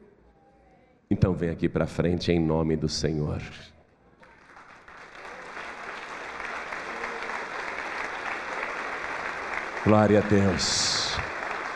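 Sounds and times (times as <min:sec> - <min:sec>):
speech: 0:01.1 - 0:03.8, 0:09.9 - 0:11.3
audience applauding: 0:04.2 - 0:11.7.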